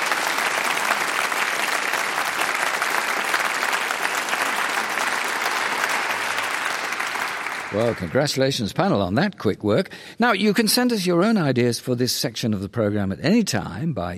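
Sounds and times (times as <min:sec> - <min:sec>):
round of applause: 0:00.0 - 0:08.6
speech: 0:07.7 - 0:14.1.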